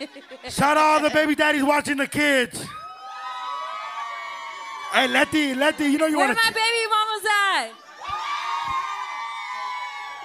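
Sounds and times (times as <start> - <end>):
laughter: 0.0 - 1.7, 5.0 - 6.6
speech: 0.0 - 2.8, 4.9 - 7.8
live audience cheering: 2.7 - 6.7, 7.8 - 10.2.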